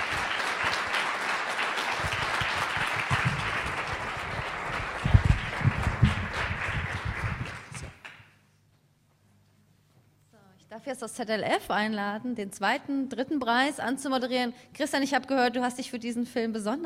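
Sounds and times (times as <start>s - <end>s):
audience applause: 0.0s - 8.2s
speech: 10.8s - 16.8s.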